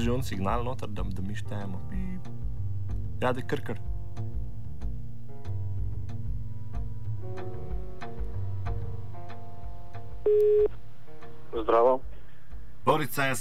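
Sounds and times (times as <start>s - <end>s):
speech: 0.0s - 2.4s, 3.2s - 4.3s, 10.3s - 10.8s, 11.5s - 12.1s, 12.8s - 13.3s
pulsing musical backing: 0.0s - 12.7s
telephone ringing tone on the line: 10.3s - 10.7s.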